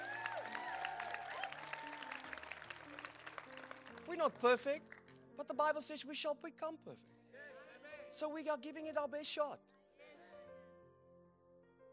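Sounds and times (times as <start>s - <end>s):
gathered crowd clapping: 0.0s - 5.2s
speech: 4.1s - 7.2s, 8.1s - 9.7s.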